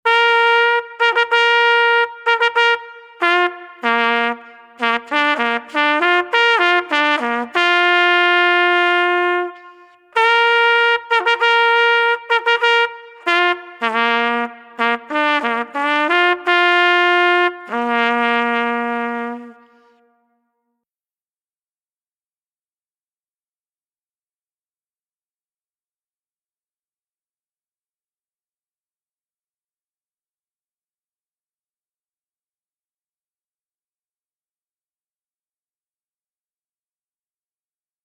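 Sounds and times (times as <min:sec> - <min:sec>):
fanfare: 0:00.1 - 0:19.6.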